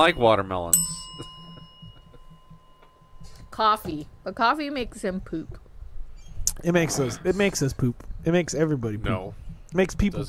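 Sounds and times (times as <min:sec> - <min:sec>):
speech: 0:00.0 - 0:01.3, 0:03.5 - 0:05.7, 0:06.6 - 0:10.2
bell ringing: 0:00.0 - 0:05.1.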